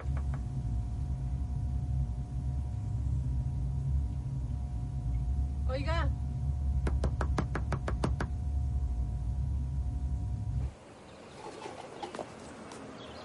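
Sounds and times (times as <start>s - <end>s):
low steady rumble: 0.0s - 11.1s
knuckles knocking on the glass window of a security office: 6.8s - 8.3s.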